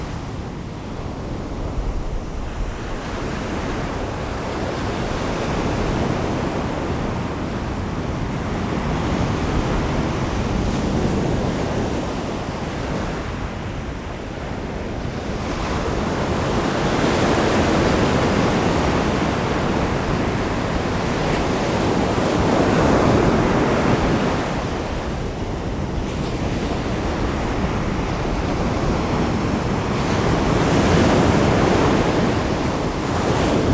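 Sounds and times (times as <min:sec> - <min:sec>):
ocean waves: 0:00.0 - 0:33.7.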